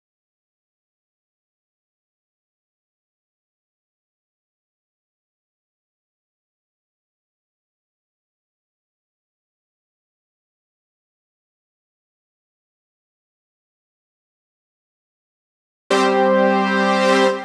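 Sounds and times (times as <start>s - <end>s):
brass instruments: 15.9s - 17.4s.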